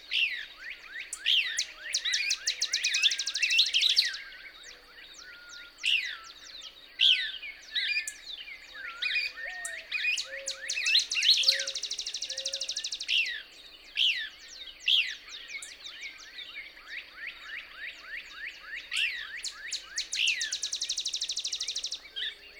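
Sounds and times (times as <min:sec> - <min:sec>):
Couch's Kingbird twittering song: 0:00.0 - 0:22.5.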